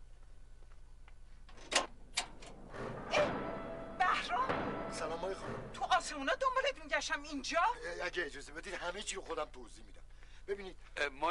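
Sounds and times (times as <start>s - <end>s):
door being opened: 1.5s - 6.7s
speech: 5.3s - 11.2s.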